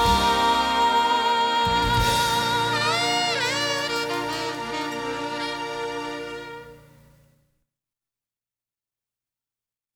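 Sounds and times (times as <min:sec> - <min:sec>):
song: 0:00.0 - 0:07.1.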